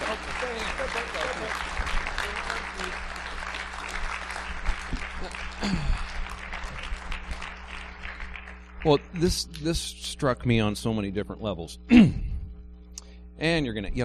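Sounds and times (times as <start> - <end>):
audience applause: 0.0 - 9.5
low hum: 0.0 - 14.0
speech: 8.8 - 12.3, 13.4 - 14.0.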